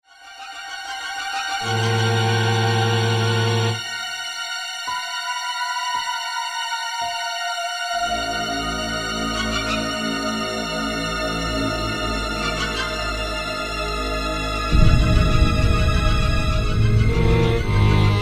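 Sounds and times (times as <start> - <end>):
tense scary music: 0.1 - 18.2.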